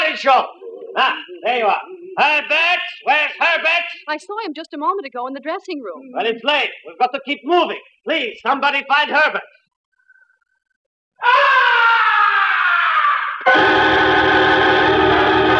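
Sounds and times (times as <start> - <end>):
speech: 0.2 - 9.6, 11.2 - 12.0, 13.4 - 14.7
blood-curdling scream: 11.2 - 15.5.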